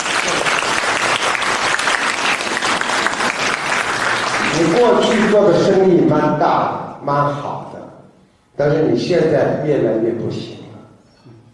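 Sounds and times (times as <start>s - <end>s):
audience applause: 0.0s - 5.4s
speech: 4.7s - 7.7s, 8.6s - 10.6s.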